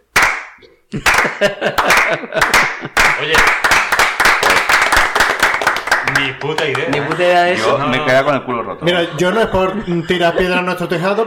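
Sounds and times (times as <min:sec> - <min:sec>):
group clapping, American-style applause: 0:00.0 - 0:08.2
speech: 0:00.9 - 0:03.8, 0:06.1 - 0:11.2.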